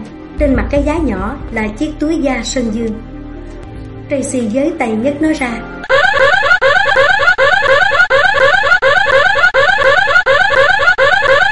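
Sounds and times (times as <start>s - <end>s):
speech: 0.4s - 3.1s, 4.1s - 5.9s
alarm bell ringing: 5.8s - 11.5s.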